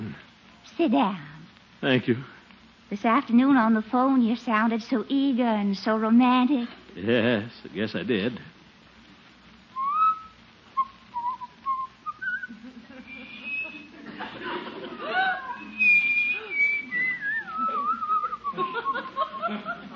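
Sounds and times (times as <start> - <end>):
speech: 0.8 - 8.5
person whistling a tune: 9.8 - 12.5, 13.1 - 13.9, 15.5 - 18.6
laughter: 12.5 - 19.9.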